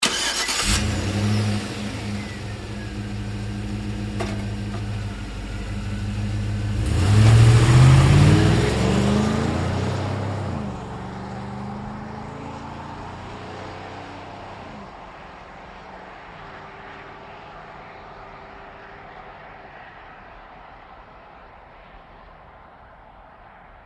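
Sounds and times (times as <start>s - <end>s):
GMC Savana truck starting and pulling away fast: 0.0s - 14.4s.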